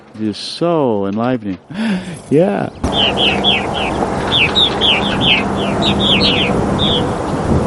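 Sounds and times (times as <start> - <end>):
speech: 0.2 - 7.6
osprey chittering calls: 2.8 - 7.2.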